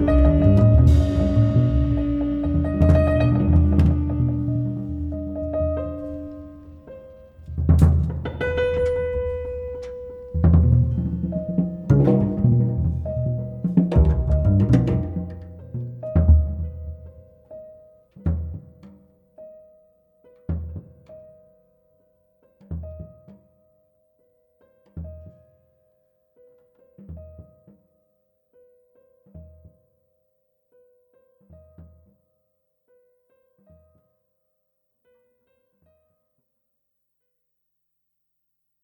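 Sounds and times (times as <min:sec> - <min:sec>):
music interlude: 0:00.0 - 0:07.4, 0:08.5 - 0:17.1.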